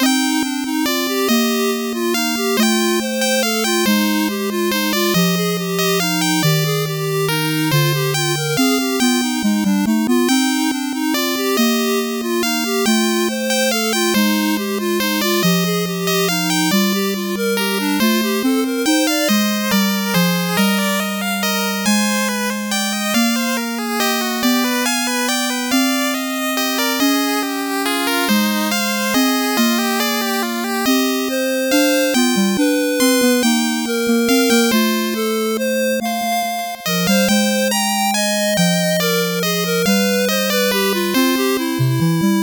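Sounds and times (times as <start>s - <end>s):
8-bit background music: 0.0s - 42.4s.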